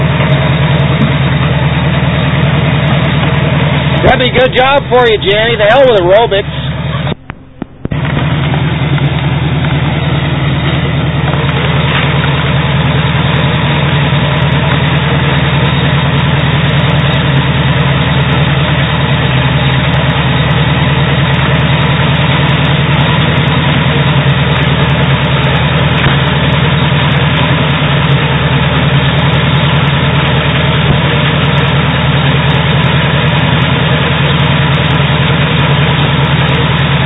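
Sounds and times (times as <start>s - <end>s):
sawmill engine running: 0.0s - 37.0s
speech: 4.2s - 6.6s.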